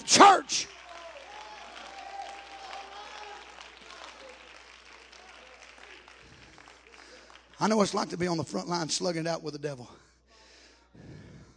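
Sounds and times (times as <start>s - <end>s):
audience clapping: 0.0s - 8.8s
speech: 7.6s - 10.0s.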